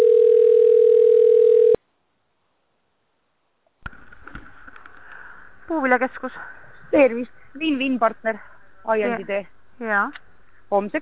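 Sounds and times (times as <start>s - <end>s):
telephone on-hold tone on a sales department's line: 0.0s - 1.8s
speech: 5.7s - 11.0s.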